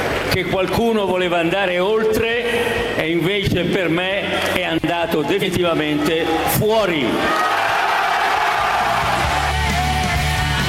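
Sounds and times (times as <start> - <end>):
speech: 0.4 - 7.6
crowd cheering and yelling: 5.8 - 10.6.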